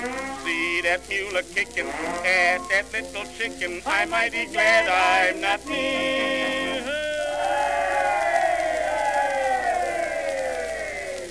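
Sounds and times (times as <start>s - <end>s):
speech: 0.8s - 6.9s
large crowd shouting and cheering: 5.2s - 11.3s.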